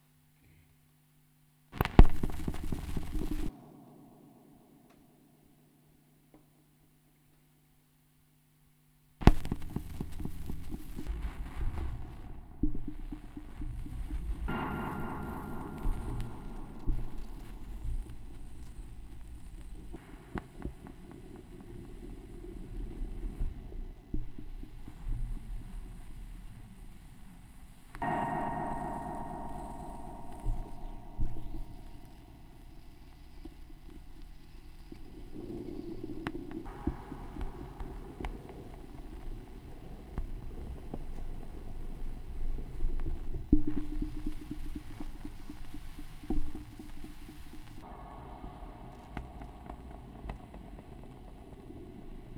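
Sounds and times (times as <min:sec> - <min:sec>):
vinyl record noise: 0:00.2 - 0:05.0, 0:08.9 - 0:52.3
tape echo effect: 0:01.8 - 0:05.6, 0:09.2 - 0:20.9, 0:28.0 - 0:52.2.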